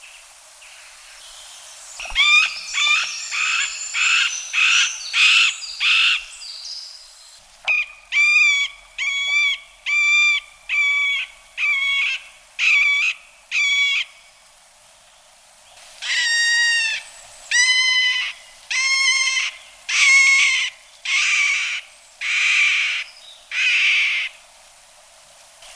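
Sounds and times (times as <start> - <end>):
middle spotted woodpecker calling: 2.0 - 6.4, 7.6 - 14.2, 16.0 - 24.4.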